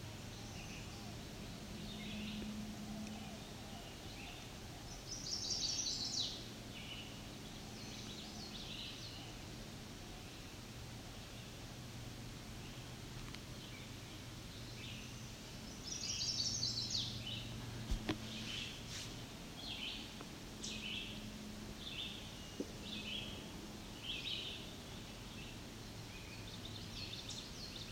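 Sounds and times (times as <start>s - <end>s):
hiss: 0.0s - 27.9s
chestnut-sided warbler singing: 0.2s - 9.4s, 13.6s - 17.6s, 19.5s - 27.9s.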